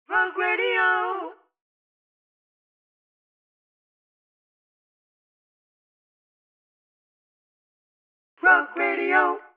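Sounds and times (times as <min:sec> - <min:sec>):
harmony vocals: 0:00.1 - 0:01.4, 0:08.4 - 0:09.5.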